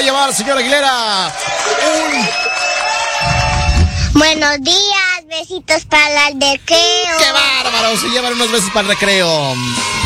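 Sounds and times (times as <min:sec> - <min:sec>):
crowd cheering and applauding for a family: 0:00.0 - 0:04.3
speech: 0:00.1 - 0:10.0
person whooping: 0:01.6 - 0:04.1.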